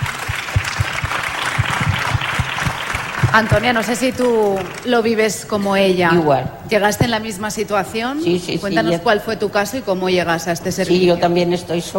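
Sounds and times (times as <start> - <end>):
audience applause: 0.0 - 5.0
speech: 3.3 - 11.9.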